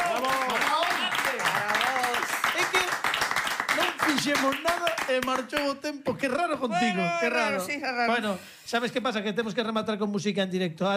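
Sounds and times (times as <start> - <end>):
applause: 0.0 - 5.8
speech: 4.2 - 10.9.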